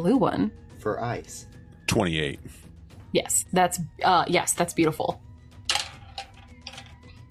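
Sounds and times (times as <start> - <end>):
speech: 0.0 - 5.2
ten-sided die dropped on table: 5.7 - 7.0.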